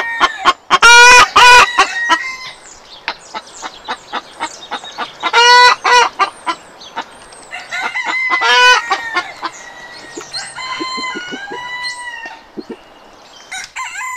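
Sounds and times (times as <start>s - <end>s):
chicken crowing: 0.0s - 2.6s, 7.5s - 12.8s, 13.5s - 14.1s.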